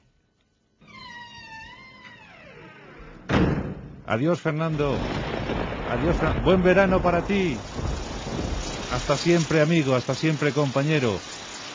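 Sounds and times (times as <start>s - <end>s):
door creaking open: 0.8s - 4.0s
door shutting thump: 2.9s - 4.0s
speech: 4.1s - 7.7s, 8.9s - 11.4s.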